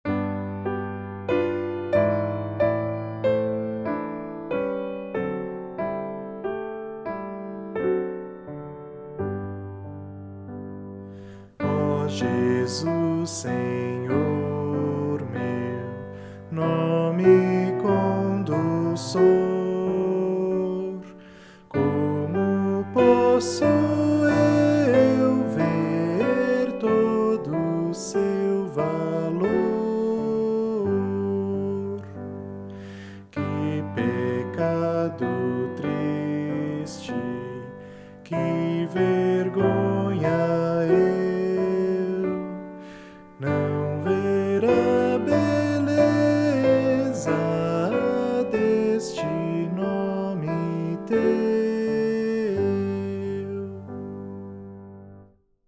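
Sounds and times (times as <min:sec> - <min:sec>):
piano: 0:00.0 - 0:55.6
person singing: 0:11.1 - 0:54.8.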